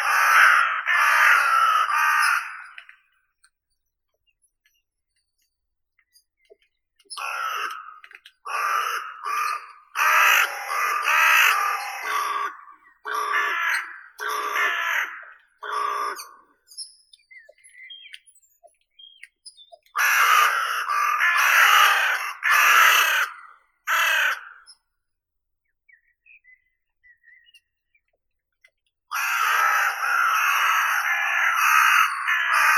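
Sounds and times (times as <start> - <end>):
Carrion crow Corvus corone calling: 0.0 - 3.1, 7.1 - 16.8, 19.8 - 24.8, 29.1 - 32.7.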